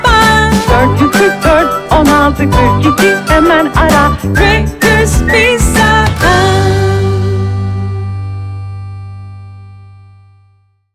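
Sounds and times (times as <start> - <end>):
jingle: 0.0 - 7.8.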